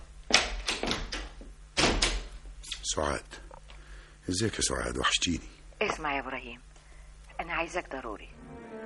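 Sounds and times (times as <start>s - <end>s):
door being closed: 0.3s - 2.3s
speech: 2.9s - 3.4s, 4.3s - 6.7s, 7.4s - 8.6s.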